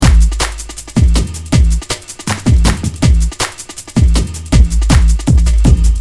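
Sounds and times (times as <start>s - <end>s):
drum loop: 0.0s - 5.9s.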